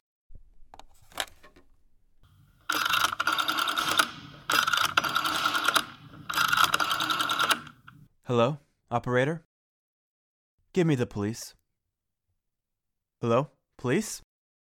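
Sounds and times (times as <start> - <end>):
rotary dial spinning back: 2.3 - 8.1
telephone being picked up with clicks: 2.3 - 8.1
speech: 8.3 - 9.5, 10.8 - 11.6, 13.2 - 14.3.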